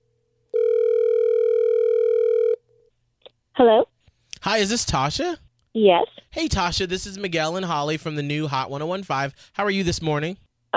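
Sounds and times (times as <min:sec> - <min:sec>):
loud phone dialing tones: 0:00.5 - 0:02.6
speech: 0:03.6 - 0:10.7.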